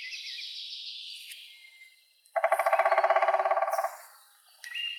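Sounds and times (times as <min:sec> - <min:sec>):
woodpecker Picidae: 0:02.3 - 0:04.9.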